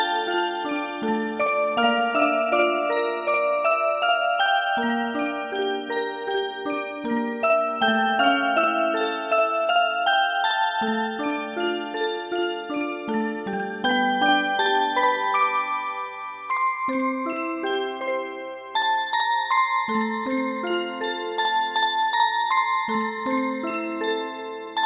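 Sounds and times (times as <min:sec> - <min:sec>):
music box: 0:00.0 - 0:24.8.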